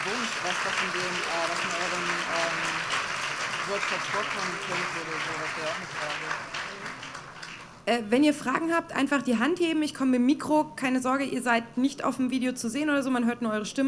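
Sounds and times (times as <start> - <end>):
audience applause: 0.0 - 7.8
speech: 0.4 - 3.0, 3.7 - 6.9, 7.9 - 13.8.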